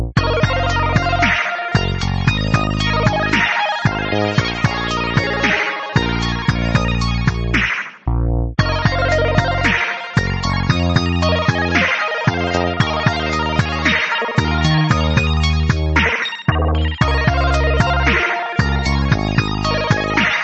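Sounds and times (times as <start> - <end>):
chiptune music: 0.2 - 7.6, 8.6 - 20.4.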